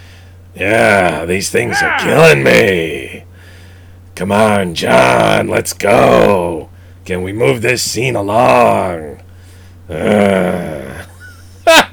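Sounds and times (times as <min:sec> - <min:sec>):
speech: 0:00.5 - 0:03.3, 0:04.2 - 0:09.2, 0:09.9 - 0:10.7
man growling: 0:00.6 - 0:02.8, 0:09.9 - 0:11.1.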